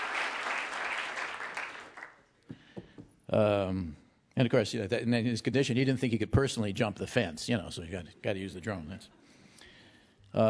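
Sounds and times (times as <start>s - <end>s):
audience applause: 0.0s - 2.2s
speech: 3.3s - 9.3s.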